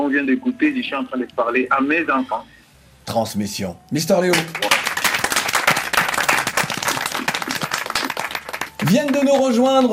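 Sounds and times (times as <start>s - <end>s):
speech: 0.0s - 4.8s, 8.9s - 9.9s
audience applause: 4.3s - 9.9s.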